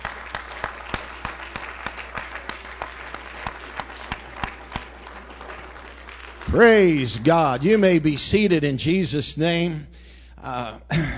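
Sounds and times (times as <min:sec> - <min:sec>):
audience hand clapping: 0:00.0 - 0:08.9
speech: 0:06.5 - 0:11.1.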